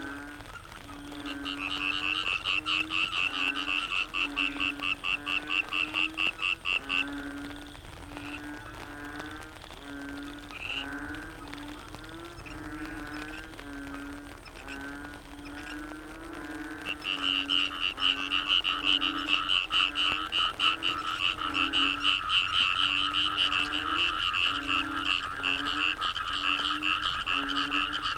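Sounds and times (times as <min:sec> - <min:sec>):
frog chorus: 0:00.0 - 0:28.1.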